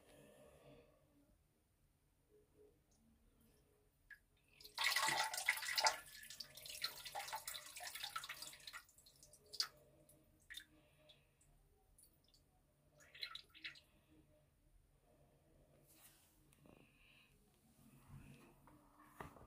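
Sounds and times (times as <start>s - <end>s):
person urinating in a toilet: 4.4s - 10.7s, 12.0s - 14.0s.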